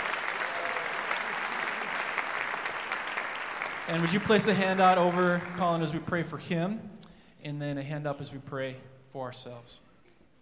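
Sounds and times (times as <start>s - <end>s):
audience applause welcoming a speaker to the stage: 0.0s - 6.0s
speech: 3.9s - 9.9s.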